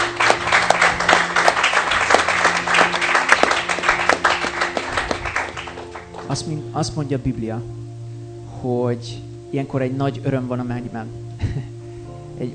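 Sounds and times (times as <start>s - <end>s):
audience applauding: 0.0s - 6.5s
speech: 6.3s - 7.8s, 8.6s - 11.7s.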